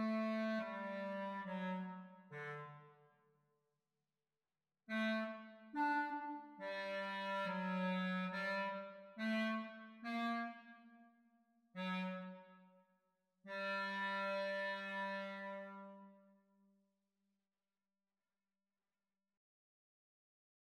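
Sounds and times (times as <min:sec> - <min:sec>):
clarinet duet practice recording: 0:00.0 - 0:02.8, 0:04.9 - 0:10.7, 0:11.8 - 0:12.7, 0:13.5 - 0:16.2.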